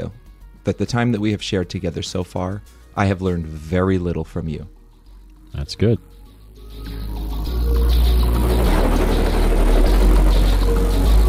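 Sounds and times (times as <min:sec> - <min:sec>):
speech: 0:00.0 - 0:04.8, 0:05.5 - 0:06.1
helicopter flying past: 0:06.7 - 0:11.2.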